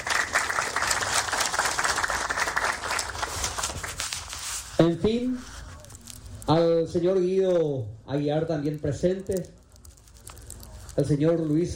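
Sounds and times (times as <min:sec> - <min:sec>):
audience applause: 0:00.0 - 0:04.0
speech: 0:04.8 - 0:05.5, 0:06.5 - 0:09.6, 0:11.0 - 0:11.7.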